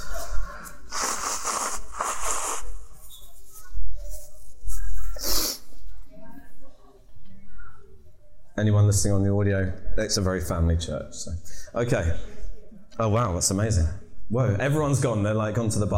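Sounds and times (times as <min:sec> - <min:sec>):
nose blowing: 0:00.8 - 0:03.1, 0:05.2 - 0:05.7
speech: 0:08.6 - 0:12.3, 0:13.0 - 0:15.9.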